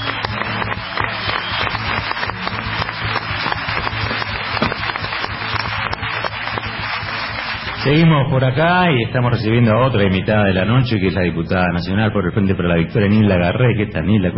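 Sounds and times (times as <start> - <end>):
sustained audience applause: 0.0 - 8.7
speech: 7.9 - 14.3.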